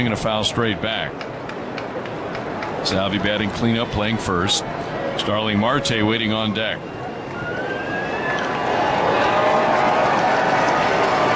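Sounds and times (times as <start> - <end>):
speech: 0.0 - 1.4, 2.8 - 7.6
ballpark crowd murmur: 0.0 - 11.3
faint whistle-like tones: 5.0 - 8.9.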